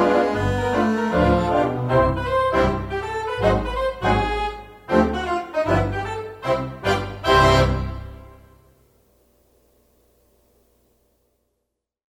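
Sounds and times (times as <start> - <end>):
theatre organ melody: 0.0 - 8.6.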